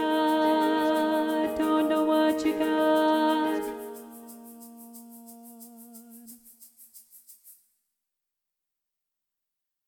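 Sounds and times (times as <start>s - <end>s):
soprano singing: 0.0s - 6.4s.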